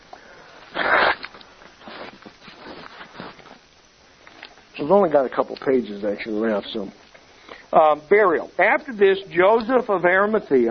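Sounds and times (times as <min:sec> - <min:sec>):
nose blowing: 0:00.7 - 0:03.5
speech: 0:04.8 - 0:07.0, 0:07.7 - 0:10.6.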